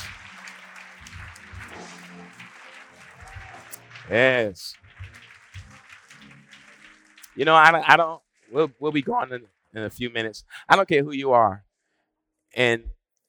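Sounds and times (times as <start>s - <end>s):
audience clapping hands in praise: 0.0s - 10.3s
speech: 4.1s - 4.8s, 7.4s - 11.7s, 12.5s - 13.2s.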